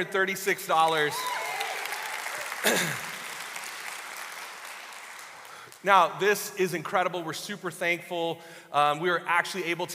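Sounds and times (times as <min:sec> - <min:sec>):
speech: 0:00.0 - 0:01.5, 0:02.6 - 0:03.1, 0:05.8 - 0:09.9
audience clapping: 0:00.7 - 0:06.3.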